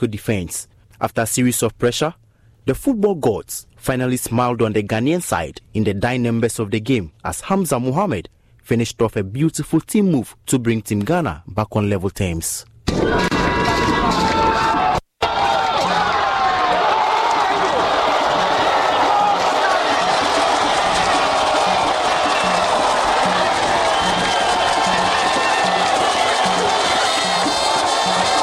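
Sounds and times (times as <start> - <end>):
speech: 0.0 - 13.3
stadium crowd singing and cheering: 14.5 - 28.4.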